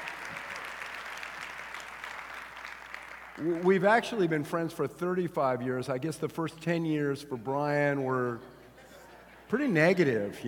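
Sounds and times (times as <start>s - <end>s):
Vineyard North Phoenix church congregation applauding to welcome a guest speaker: 0.0s - 4.6s
speech: 3.4s - 8.6s, 9.5s - 10.4s.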